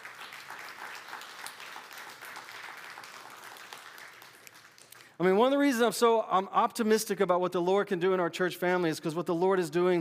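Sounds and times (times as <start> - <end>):
round of applause: 0.0 - 5.2
speech: 5.2 - 9.9.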